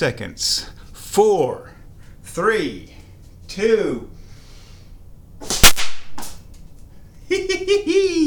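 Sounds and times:
speech: 0.0s - 1.7s, 2.4s - 4.2s, 7.3s - 8.2s
blowgun dart hitting a wall: 5.4s - 6.4s.

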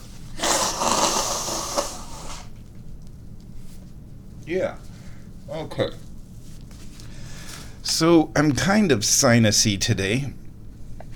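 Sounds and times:
person blowing their nose: 0.3s - 2.5s
speech: 4.5s - 4.9s, 5.5s - 6.0s, 8.0s - 10.4s.

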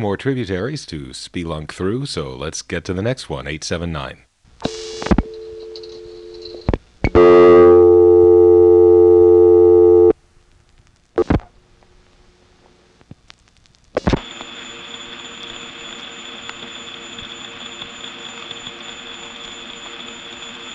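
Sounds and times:
speech: 0.0s - 4.3s
faint steady hum: 0.0s - 20.7s
telephone ringback tone: 4.7s - 6.6s, 7.2s - 10.1s, 14.2s - 20.7s
telephone line clicks and crackle: 10.0s - 20.7s.

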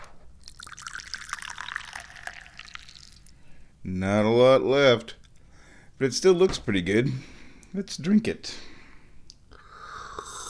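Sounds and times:
last bit of tea poured into a cup: 0.4s - 3.4s
speech: 3.9s - 5.2s, 6.0s - 8.7s.

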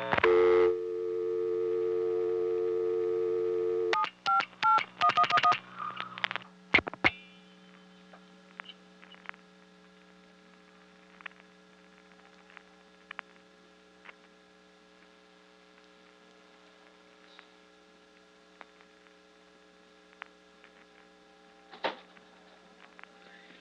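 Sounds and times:
touch-tone telephone dial tone: 0.0s - 5.6s
low mains hum: 0.0s - 23.6s.

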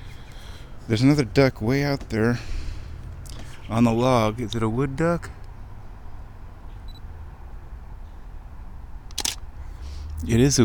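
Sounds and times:
steady low rumble of outdoor noise: 0.0s - 10.6s
speech: 0.9s - 2.6s, 3.7s - 5.4s, 10.2s - 10.6s
camera shutter click: 9.1s - 9.5s.

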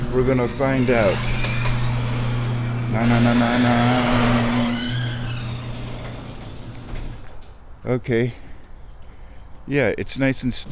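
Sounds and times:
garage door opening: 0.0s - 7.7s
speech: 0.1s - 1.5s, 2.9s - 4.6s, 7.8s - 8.4s, 9.7s - 10.7s.

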